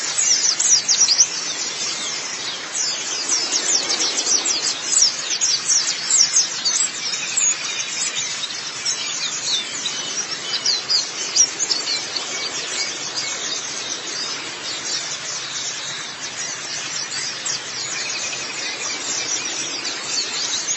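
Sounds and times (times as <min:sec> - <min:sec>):
white-eye song: 0:00.0 - 0:20.7.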